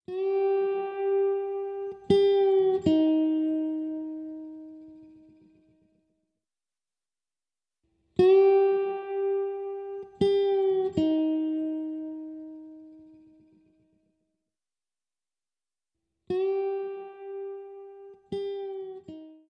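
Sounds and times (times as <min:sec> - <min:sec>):
swamp guitar: 0:00.1 - 0:06.0, 0:08.2 - 0:14.0, 0:16.3 - 0:19.4.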